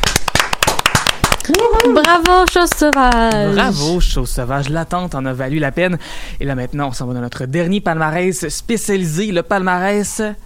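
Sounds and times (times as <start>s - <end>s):
audience applause: 0.0s - 3.6s
voices cheering: 1.5s - 2.3s
speech: 1.8s - 10.4s.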